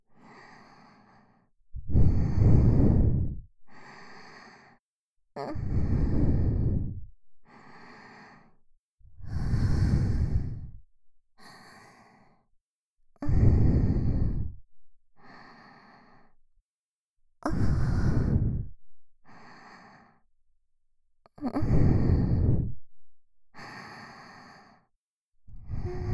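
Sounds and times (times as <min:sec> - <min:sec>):
sweet breathing loop: 0:00.2 - 0:04.8, 0:05.6 - 0:08.6, 0:09.3 - 0:10.8, 0:11.4 - 0:12.5, 0:13.3 - 0:16.3, 0:17.5 - 0:20.2, 0:21.6 - 0:22.7, 0:23.6 - 0:24.9, 0:25.6 - 0:26.1.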